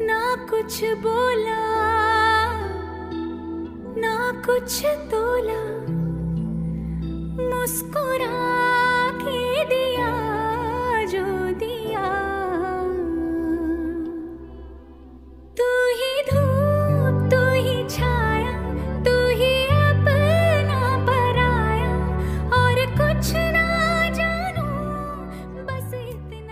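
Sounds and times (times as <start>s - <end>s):
romantic Hindi song ringtone: 0.0s - 26.5s.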